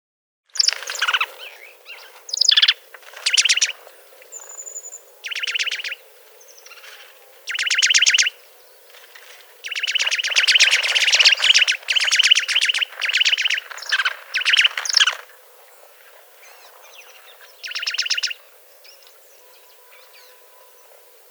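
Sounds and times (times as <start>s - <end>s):
juniper titmouse Baeolophus ridgwayi song: 0.6s - 21.2s.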